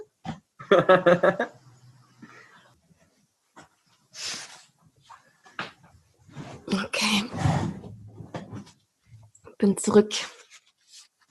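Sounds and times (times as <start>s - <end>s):
speech: 0.7s - 1.5s, 9.6s - 10.4s
person blowing nose: 4.2s - 4.6s.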